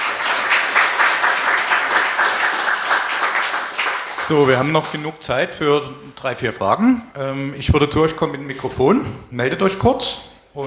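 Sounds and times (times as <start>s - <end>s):
audience applause: 0.0s - 5.0s
speech: 4.3s - 10.6s.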